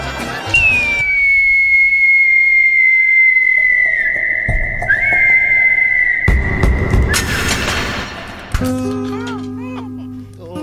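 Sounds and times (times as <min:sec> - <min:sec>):
cartoon falling whistle: 0:00.5 - 0:07.8
heavy booming crashes: 0:00.6 - 0:08.7.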